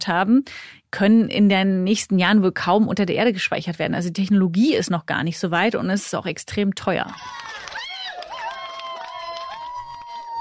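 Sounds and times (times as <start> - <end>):
speech: 0.0 - 7.5
crowd cheering outside a court: 7.1 - 10.4.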